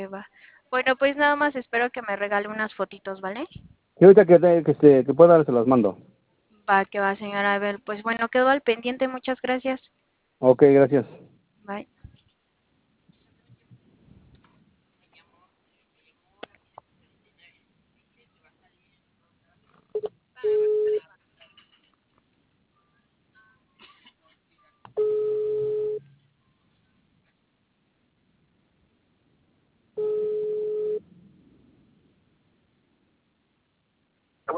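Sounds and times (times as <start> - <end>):
speech: 0.0 - 6.1, 6.7 - 12.0
telephone tones while a call is being placed: 20.0 - 21.0, 24.9 - 26.1, 30.0 - 31.0.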